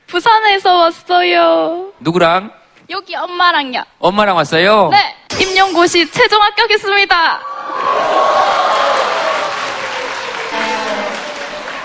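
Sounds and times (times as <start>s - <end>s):
speech: 0.2s - 8.3s
audience applause: 7.6s - 11.8s.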